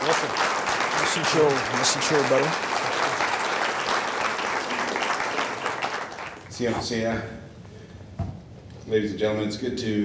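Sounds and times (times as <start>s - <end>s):
audience applause welcoming a speaker: 0.0s - 6.5s
speech: 1.2s - 3.0s, 6.6s - 7.4s, 8.9s - 10.0s.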